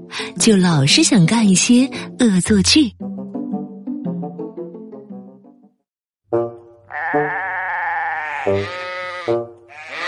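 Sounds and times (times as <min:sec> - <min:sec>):
speech: 0:00.2 - 0:03.0
sheep bleating: 0:06.9 - 0:10.0.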